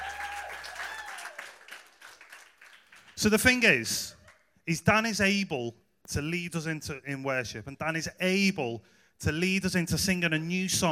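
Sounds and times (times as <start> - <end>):
audience applause: 0.0 - 3.3
speech: 3.2 - 10.9.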